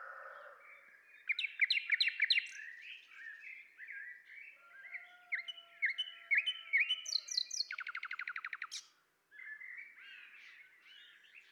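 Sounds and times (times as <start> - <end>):
common nightingale Luscinia megarhynchos singing rattling trills and whistles: 1.3 - 3.4, 6.0 - 8.8.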